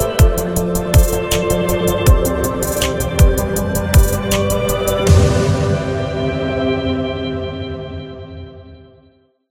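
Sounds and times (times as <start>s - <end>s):
happy beat: 0.0s - 6.7s.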